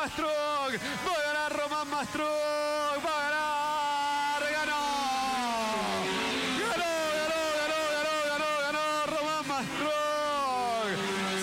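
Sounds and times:
speech: 0:00.0 - 0:06.2
race car engines roaring approaching the finish line: 0:00.0 - 0:11.4.

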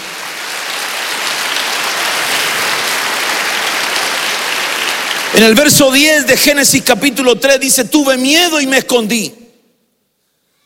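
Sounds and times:
audience clapping hands: 0:00.0 - 0:06.8
speech: 0:05.4 - 0:09.4.

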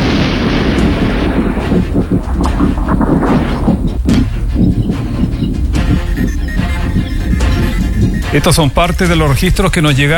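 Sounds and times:
thunder during a storm in Romeral: 0:00.0 - 0:05.3
laughter: 0:05.7 - 0:09.8
speech: 0:08.4 - 0:10.1.

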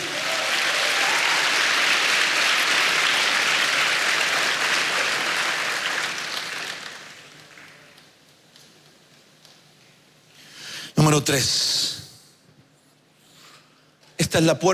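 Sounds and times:
audience clapping: 0:00.0 - 0:08.2
speech: 0:11.1 - 0:11.8, 0:14.3 - 0:14.7.

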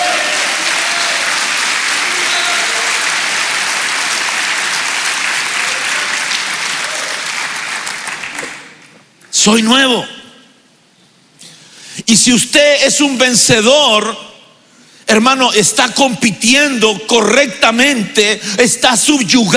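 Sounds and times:
audience clapping: 0:00.0 - 0:09.1
speech: 0:09.4 - 0:10.1, 0:12.1 - 0:14.3, 0:15.1 - 0:19.5.

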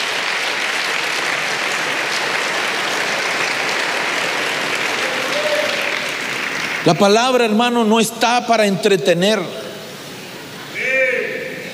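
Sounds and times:
audience applause: 0:00.0 - 0:07.6
speech: 0:06.8 - 0:09.6.

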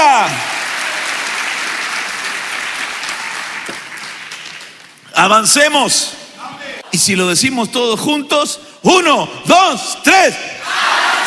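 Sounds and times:
audience applauding: 0:00.0 - 0:05.0
speech: 0:05.2 - 0:06.2, 0:06.9 - 0:11.0.

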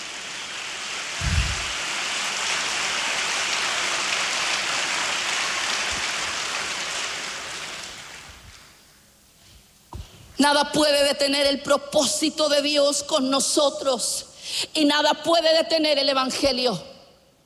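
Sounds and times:
audience applauding: 0:00.2 - 0:08.4
speech: 0:10.4 - 0:16.9.

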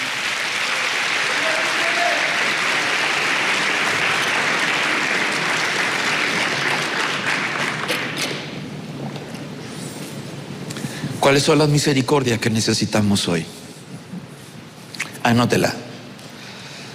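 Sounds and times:
audience clapping: 0:00.0 - 0:08.6
speech: 0:11.3 - 0:13.6, 0:15.4 - 0:15.8.

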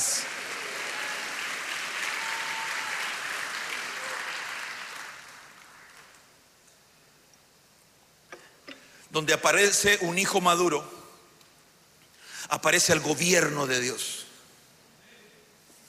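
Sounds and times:
audience clapping: 0:00.0 - 0:06.4
speech: 0:09.2 - 0:11.0, 0:12.5 - 0:14.2.

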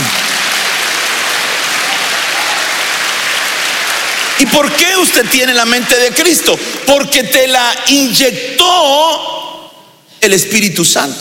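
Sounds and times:
audience clapping: 0:00.0 - 0:07.1
speech: 0:04.4 - 0:09.3, 0:10.2 - 0:11.1.

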